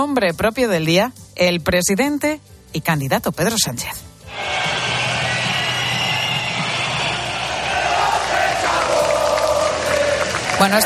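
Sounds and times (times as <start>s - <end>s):
speech: 0.0s - 4.7s, 10.6s - 10.8s
crowd booing a president: 4.3s - 10.8s.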